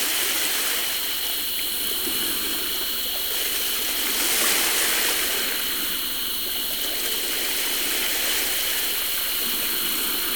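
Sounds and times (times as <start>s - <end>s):
very calm sea in summer: 0.0s - 10.3s.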